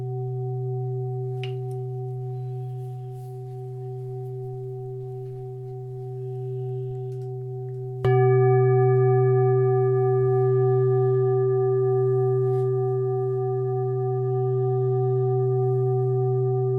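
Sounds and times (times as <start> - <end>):
chakra bowl: 0.0 - 16.7.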